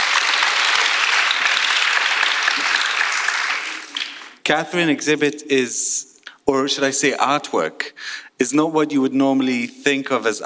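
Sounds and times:
crowd clapping to welcome an artist at an exhibition event: 0:00.0 - 0:04.4
speech: 0:04.5 - 0:10.4.

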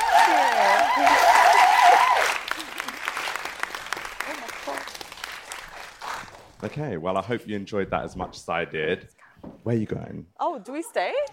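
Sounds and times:
audience applause: 0:00.0 - 0:06.6
speech: 0:06.6 - 0:11.3.

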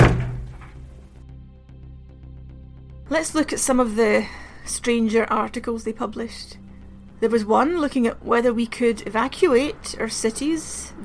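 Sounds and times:
shelter door clanging shut: 0:00.0 - 0:00.9
speech: 0:03.1 - 0:06.6, 0:07.2 - 0:11.0.

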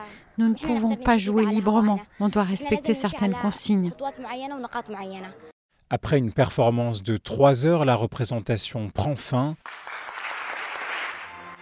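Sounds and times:
speech: 0:00.1 - 0:10.0
theatre audience applause: 0:09.6 - 0:11.6.

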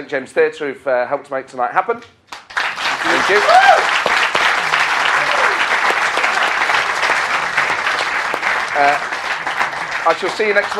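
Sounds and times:
speech: 0:00.0 - 0:02.3, 0:03.0 - 0:04.1, 0:08.8 - 0:09.2, 0:10.0 - 0:10.7
crowd clapping: 0:02.3 - 0:10.7
cheer or whoop: 0:03.0 - 0:04.0, 0:05.1 - 0:05.7.

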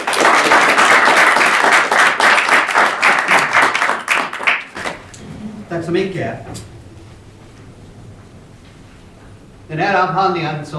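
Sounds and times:
audience applause: 0:00.0 - 0:05.2
speech: 0:05.9 - 0:06.7, 0:09.7 - 0:10.7.

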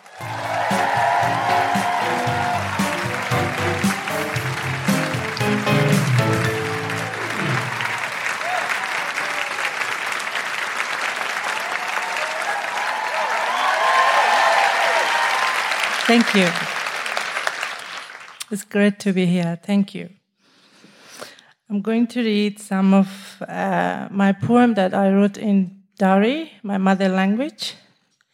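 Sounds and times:
audience woohooing welcoming a performer: 0:00.0 - 0:10.2, 0:11.4 - 0:16.0
audience applause welcoming a poet at a Canberra event: 0:00.0 - 0:18.4
speech: 0:16.1 - 0:16.7, 0:18.5 - 0:20.2, 0:21.7 - 0:27.8.

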